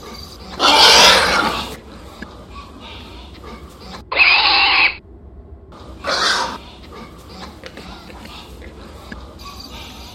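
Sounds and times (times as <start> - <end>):
hog grunts and squeals: 0.0 - 1.8, 3.4 - 5.0, 6.0 - 7.6
low steady murmur: 0.0 - 4.3, 5.0 - 10.1.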